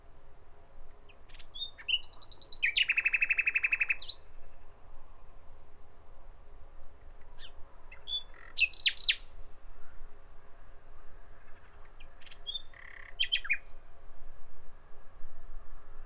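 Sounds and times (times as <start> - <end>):
common nightingale singing: 1.3 - 4.3, 7.4 - 9.3, 12.0 - 14.0.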